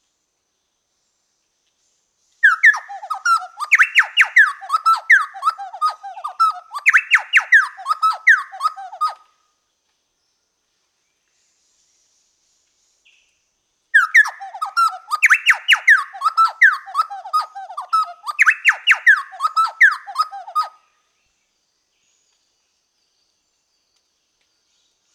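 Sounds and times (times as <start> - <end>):
Orthonyx spaldingii chowchilla call: 2.4 - 9.2, 14.0 - 20.8.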